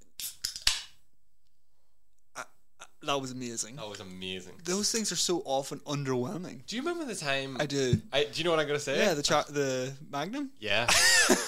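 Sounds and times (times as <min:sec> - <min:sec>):
can of energy drink being cracked open: 0:00.2 - 0:00.9
speech: 0:03.1 - 0:11.4.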